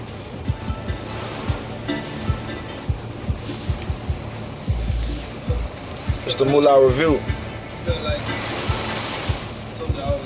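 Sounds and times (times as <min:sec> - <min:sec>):
rain during a hurricane: 0:00.0 - 0:10.2
speech: 0:06.4 - 0:07.4.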